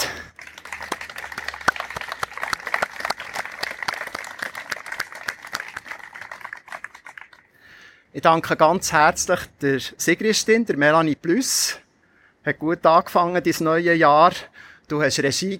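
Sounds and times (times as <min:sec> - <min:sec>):
crowd applause: 0:00.0 - 0:07.5
speech: 0:08.2 - 0:11.8, 0:12.4 - 0:15.5.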